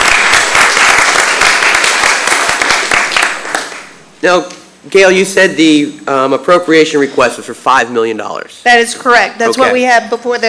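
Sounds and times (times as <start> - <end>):
crowd applauding: 0.0 - 4.0
speech: 4.2 - 10.4.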